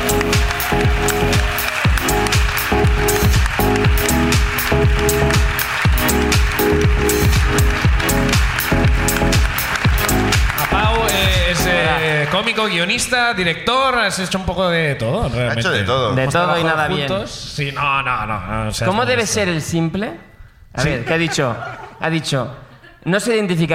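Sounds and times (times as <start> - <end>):
walk-on music with thumping beat: 0.0 - 12.0
audience applause: 0.0 - 13.2
speech: 12.6 - 23.7
laughter: 20.8 - 23.1.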